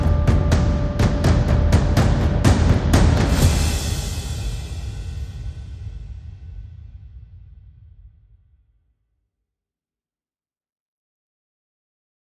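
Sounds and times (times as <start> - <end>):
drums: 0.0 - 8.5.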